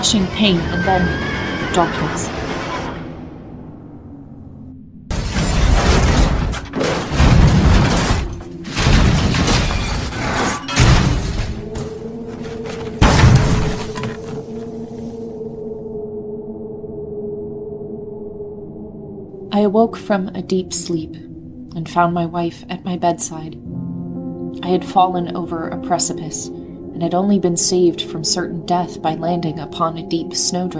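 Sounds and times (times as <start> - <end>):
speech: 0.0 - 2.5, 19.6 - 23.8, 24.6 - 30.7
mighty crash of a coach: 5.1 - 14.7.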